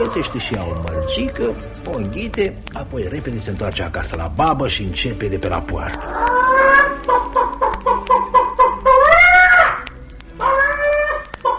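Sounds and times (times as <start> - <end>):
hen cackling: 0.0 - 2.4, 5.9 - 11.5
speech: 0.0 - 7.4.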